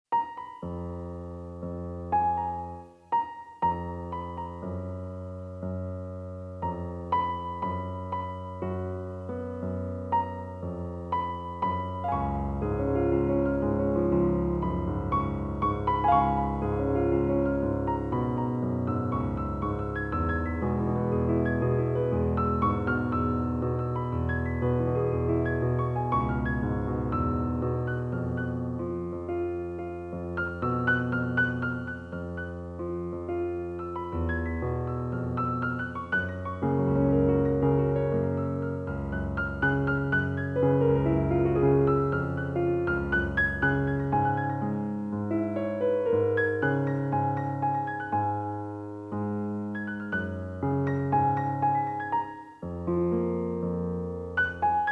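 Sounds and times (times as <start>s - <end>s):
piano: 0.0s - 54.9s.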